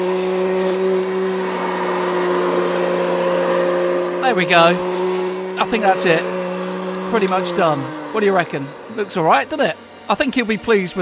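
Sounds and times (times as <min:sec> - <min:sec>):
vacuum cleaner running: 0:00.0 - 0:11.0
speech: 0:04.3 - 0:04.9, 0:05.6 - 0:06.4, 0:07.1 - 0:11.0.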